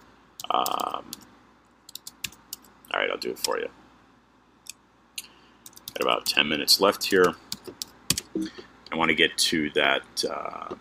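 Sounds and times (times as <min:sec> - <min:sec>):
computer keyboard typing a Google search: 0:00.4 - 0:01.3, 0:01.9 - 0:02.7, 0:05.6 - 0:06.4, 0:07.2 - 0:08.4
speech: 0:03.2 - 0:03.8, 0:06.0 - 0:07.6, 0:08.4 - 0:10.8.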